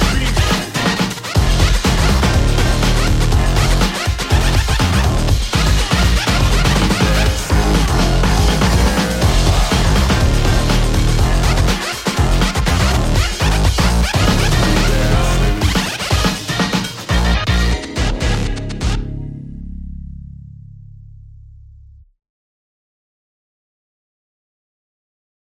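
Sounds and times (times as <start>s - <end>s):
funk breakbeat music: 0.0s - 19.2s.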